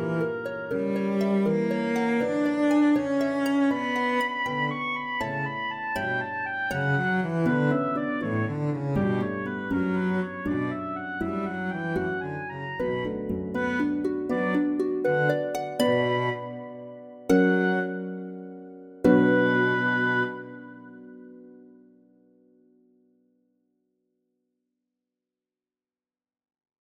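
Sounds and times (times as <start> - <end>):
cello in B minor: 0.0 - 21.6
oboe in B minor: 0.0 - 21.8
harp in B minor: 0.0 - 22.6.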